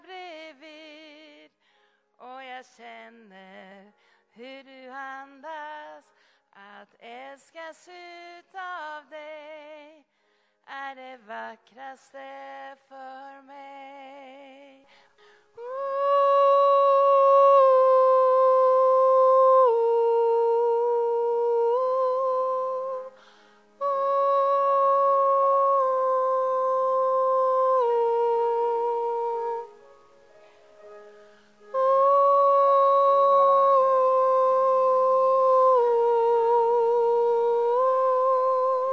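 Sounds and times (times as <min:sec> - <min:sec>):
tenor singing: 0:15.6 - 0:38.9.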